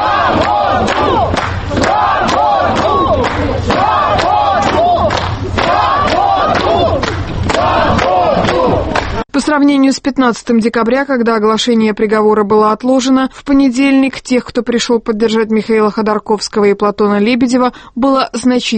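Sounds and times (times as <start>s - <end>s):
crowd applauding: 0.0s - 9.2s
speech: 0.3s - 1.2s, 9.4s - 18.7s.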